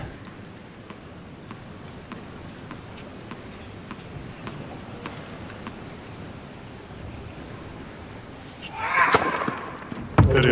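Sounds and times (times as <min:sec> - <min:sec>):
tennis serve ball impacts: 0:00.2 - 0:06.3, 0:09.1 - 0:10.4.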